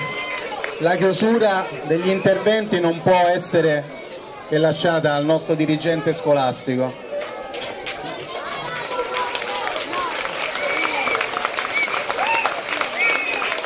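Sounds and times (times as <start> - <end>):
crowd clapping: 0.0 - 1.2, 7.8 - 13.6
scattered voices and cheering calls: 0.0 - 3.0, 7.1 - 13.6
speech: 0.8 - 7.0.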